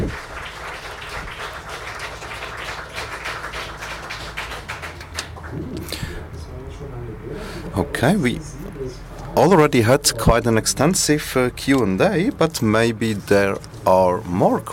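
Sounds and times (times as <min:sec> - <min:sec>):
audience applause: 0:00.0 - 0:06.3
speech: 0:07.8 - 0:08.6, 0:09.4 - 0:14.7.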